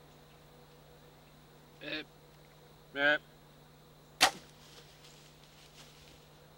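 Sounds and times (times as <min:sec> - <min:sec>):
quiet steady hum: 0:00.0 - 0:06.5
bow shot at a buck during an early-season hunt: 0:04.2 - 0:04.5.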